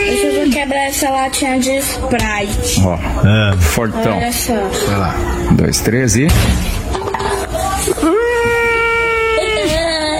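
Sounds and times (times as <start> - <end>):
speech: 0.6 - 7.0, 7.9 - 8.3
child crying: 7.8 - 10.1.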